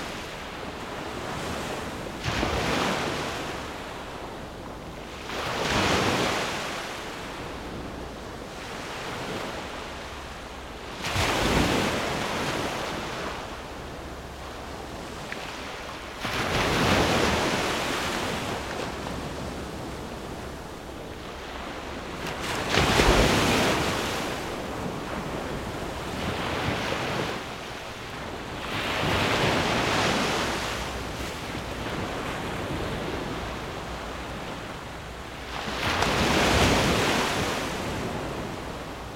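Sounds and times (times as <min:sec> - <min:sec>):
waves at sea: 0:00.0 - 0:39.1.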